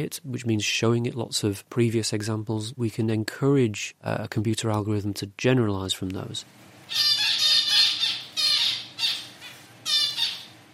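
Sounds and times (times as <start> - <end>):
speech: 0.0 - 7.2
female zebra finch calls: 6.9 - 10.6.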